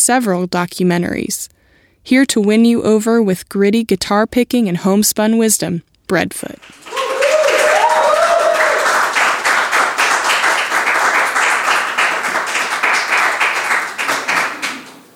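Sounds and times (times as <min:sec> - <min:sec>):
speech: 0:00.0 - 0:07.0
audience applause: 0:06.6 - 0:15.1
person whooping: 0:06.8 - 0:09.4.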